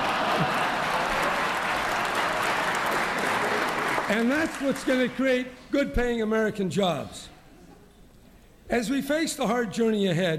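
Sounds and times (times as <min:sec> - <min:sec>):
audience applause: 0:00.0 - 0:05.3
speech: 0:04.1 - 0:07.3, 0:08.7 - 0:10.3.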